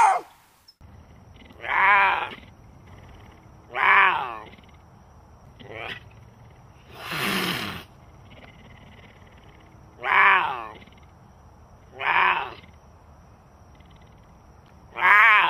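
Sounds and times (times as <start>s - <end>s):
cougar giving short harsh cries: 1.3s - 4.8s, 5.6s - 6.1s, 6.9s - 11.1s, 11.9s - 12.8s, 14.9s - 15.4s.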